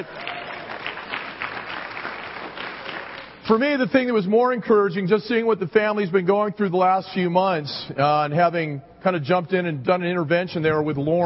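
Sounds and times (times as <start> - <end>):
speech: 0.0 - 0.2, 3.5 - 11.2
audience clapping steadily: 0.0 - 3.4.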